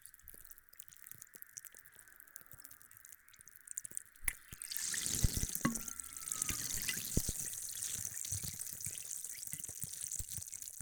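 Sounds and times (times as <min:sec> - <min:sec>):
carbonated drink fizzing: 0:04.2 - 0:10.6.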